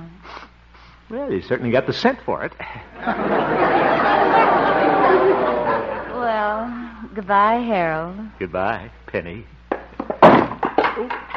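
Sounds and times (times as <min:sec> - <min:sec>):
speech: 0:01.1 - 0:03.4, 0:06.6 - 0:09.6, 0:11.0 - 0:11.2
laughter: 0:02.9 - 0:06.8
chair being knocked over: 0:09.7 - 0:11.3.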